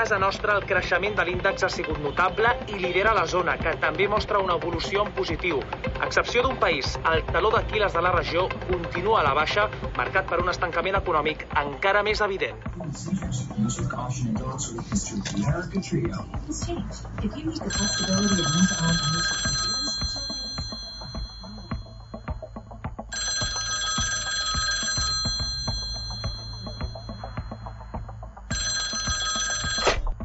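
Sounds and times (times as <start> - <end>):
speech: 0.0 - 19.4
telephone ringing with trilling bell tones: 17.6 - 30.2.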